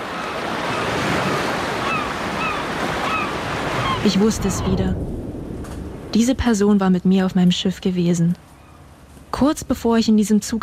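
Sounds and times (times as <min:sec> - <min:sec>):
seagulls: 0:00.0 - 0:04.9, 0:08.4 - 0:09.1
distant ocean waves: 0:00.0 - 0:10.6
speech: 0:04.0 - 0:05.2, 0:06.1 - 0:08.5, 0:09.4 - 0:10.6.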